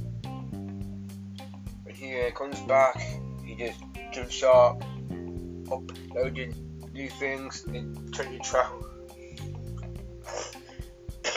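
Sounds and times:
speech: 2.0s - 4.9s, 5.7s - 8.9s
cough: 10.3s - 10.6s.

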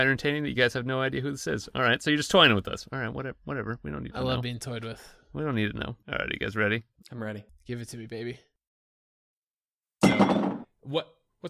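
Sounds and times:
speech: 0.0s - 8.5s, 10.9s - 11.4s
full beer glass knocked over: 10.0s - 10.7s.

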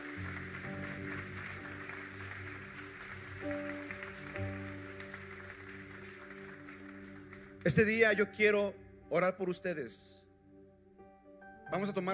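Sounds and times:
audience applauding: 0.0s - 8.2s
speech: 7.6s - 10.2s, 11.7s - 12.1s.

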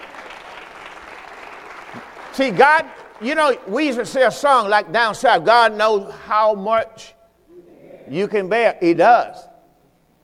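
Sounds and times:
crowd clapping: 0.0s - 4.7s
speech: 1.9s - 7.2s, 8.1s - 9.5s.

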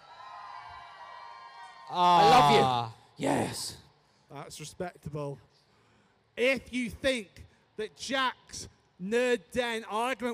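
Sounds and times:
audience cheering: 0.0s - 2.8s
speech: 1.9s - 5.5s, 6.4s - 10.3s.

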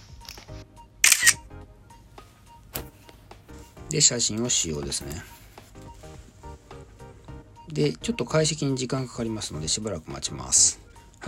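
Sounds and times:
phone camera shutter taking a photo in Google Keep: 1.0s - 1.5s
speech: 3.9s - 5.4s, 7.7s - 11.2s.

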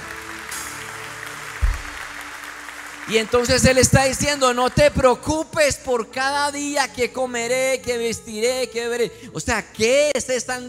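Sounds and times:
audience applauding: 0.0s - 5.1s
low thump: 1.6s - 2.1s
speech: 3.1s - 10.6s.

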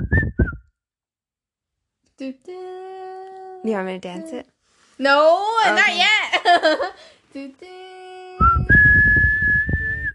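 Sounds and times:
person whistling a movie theme tune: 0.0s - 0.7s, 8.4s - 10.1s
speech: 2.2s - 2.8s, 3.6s - 7.8s
low rumbling: 8.4s - 10.1s.

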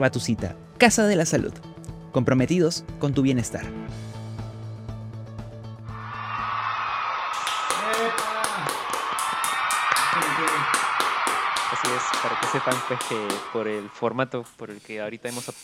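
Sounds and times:
speech: 0.0s - 4.2s, 12.0s - 15.6s
canned crowd applause: 5.9s - 14.4s.

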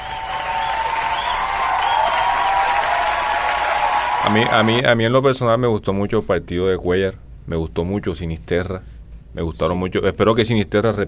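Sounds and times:
loud applause: 0.0s - 4.8s
speech: 4.2s - 11.0s.

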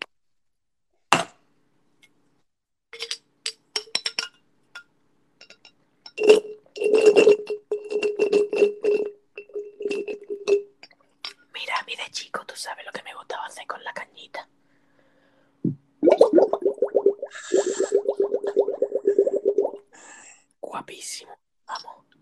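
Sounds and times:
glass clinking: 3.0s - 11.5s
person gulping water: 15.7s - 19.9s.

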